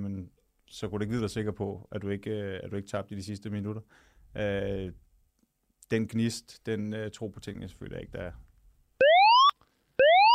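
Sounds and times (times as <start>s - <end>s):
speech: 0.7s - 5.0s, 5.9s - 8.4s
electronic alarm signal with upward-sweeping tones: 9.0s - 10.3s.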